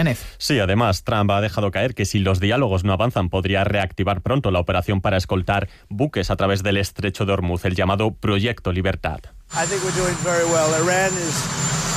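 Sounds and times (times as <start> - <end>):
speech: 0.0 - 11.9
helicopter engine roar: 9.5 - 11.9.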